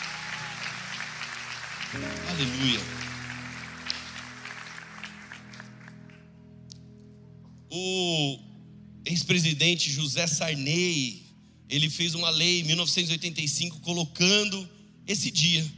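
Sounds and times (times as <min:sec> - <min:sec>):
audience clapping: 0:00.0 - 0:06.4
held organ-like chord: 0:00.0 - 0:09.9
speech: 0:01.9 - 0:03.0, 0:07.7 - 0:08.4, 0:09.1 - 0:15.7.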